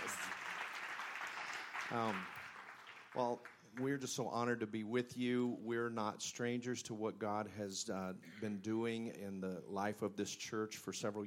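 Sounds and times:
audience applause: 0.0s - 3.6s
speech: 1.9s - 2.4s, 3.1s - 11.2s.

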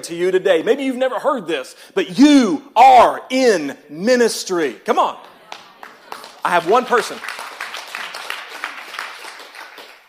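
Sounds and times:
speech: 0.0s - 5.3s, 6.4s - 7.4s
audience clapping: 5.2s - 10.0s.

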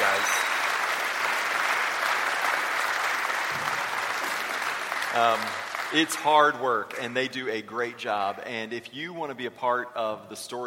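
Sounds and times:
audience applause: 0.0s - 7.2s
speech: 5.2s - 10.6s.

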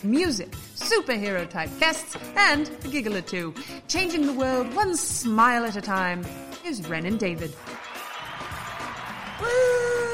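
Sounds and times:
speech: 0.0s - 7.7s
audience cheering: 7.6s - 10.1s.

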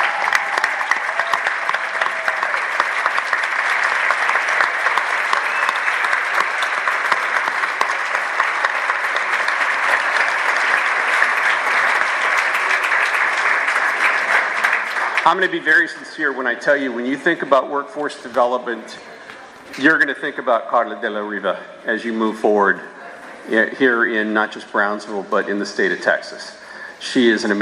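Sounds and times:
audience applause during a standing ovation: 0.0s - 16.0s
speech: 15.3s - 19.1s, 19.8s - 22.9s, 23.5s - 27.6s.

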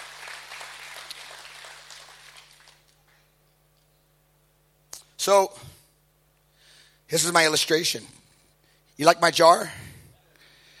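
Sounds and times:
audience clapping: 0.0s - 3.3s
low electrical hum: 0.0s - 10.7s
speech: 5.2s - 5.8s, 7.1s - 8.2s, 9.0s - 9.8s.

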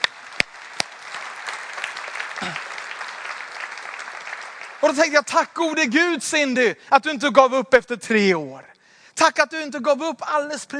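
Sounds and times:
audience applause: 0.0s - 5.3s
speech: 4.8s - 10.7s.

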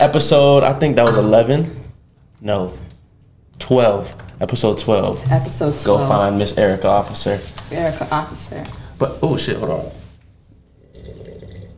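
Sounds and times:
speech: 0.0s - 1.8s, 2.4s - 2.8s, 3.6s - 10.0s
loud slurping sip of a drink: 10.8s - 11.7s.

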